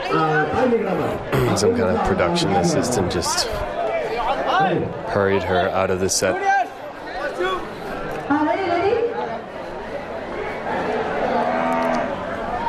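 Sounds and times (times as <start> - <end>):
crowd chatter: 0.0 - 12.6
outdoor bustle: 0.0 - 12.6
speech: 0.1 - 3.8, 4.6 - 6.5
cow mooing: 11.4 - 12.2.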